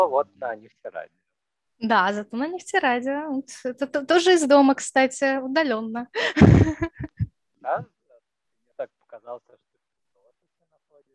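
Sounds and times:
faint voice over a degraded connection: 0.0 - 1.1, 9.2 - 9.6
speech: 0.0 - 7.0, 8.8 - 9.7.

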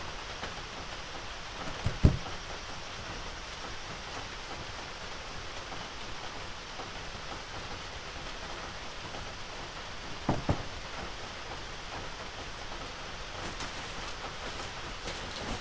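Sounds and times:
rain falling on an evening before a typhoon: 0.0 - 15.6
knocks: 1.8 - 2.3, 10.3 - 10.7.

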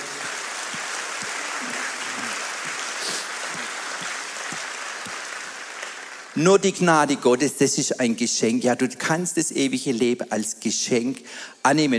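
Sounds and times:
audience applause: 0.0 - 7.2
speech: 6.4 - 11.9.

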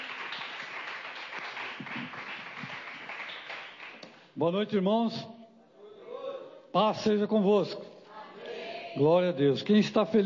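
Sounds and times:
audience clapping loudly: 0.0 - 4.2
speech: 4.4 - 5.4, 6.8 - 7.9, 9.0 - 10.2.

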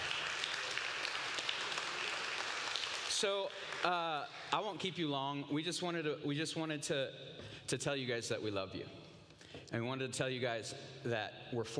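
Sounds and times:
audience clapping: 0.0 - 4.7
speech: 3.2 - 9.0, 9.6 - 11.7.

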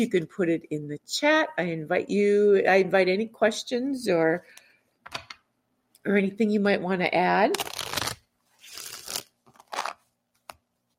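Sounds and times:
speech: 0.0 - 5.2, 6.0 - 7.7
oracle cards being shuffled: 7.6 - 10.6.

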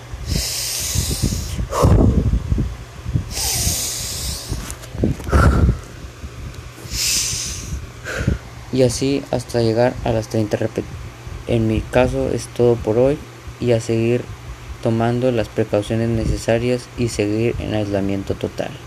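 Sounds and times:
deep breaths during breathing exercise: 0.2 - 2.3, 3.3 - 6.0, 6.8 - 8.5
speech: 8.8 - 18.8.

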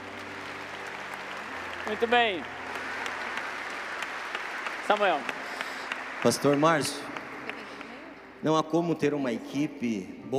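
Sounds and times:
audience applause: 0.0 - 8.2
speech: 1.9 - 2.6, 4.9 - 5.4, 6.2 - 7.1, 8.4 - 10.3.

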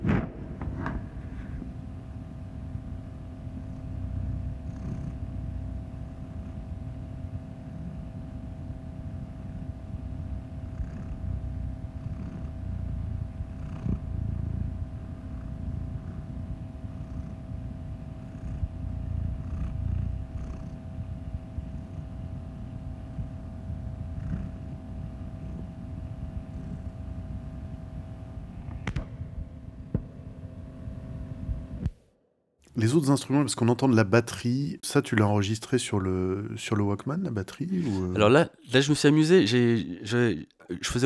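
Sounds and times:
cat purring: 0.0 - 31.9
speech: 32.8 - 41.0.

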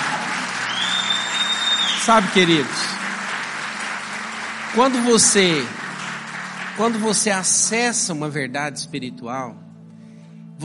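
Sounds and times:
audience applause: 0.0 - 7.9
speech: 2.0 - 2.9, 4.7 - 5.8, 6.8 - 9.6.

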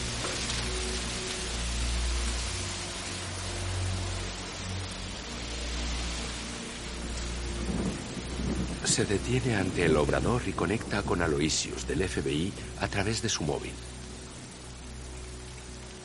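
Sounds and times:
steady rain: 0.0 - 16.0
low rolling thunder: 7.4 - 11.9
speech: 9.0 - 13.9.

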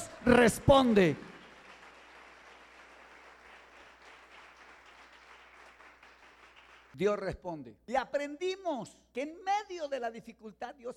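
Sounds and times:
applause: 0.0 - 7.0
speech: 0.2 - 1.3, 7.0 - 10.9.

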